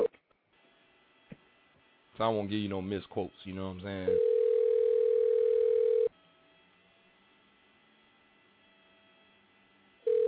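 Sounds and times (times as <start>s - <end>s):
speech: 2.2s - 4.3s
telephone dial tone while calling: 4.0s - 6.1s, 10.1s - 10.2s.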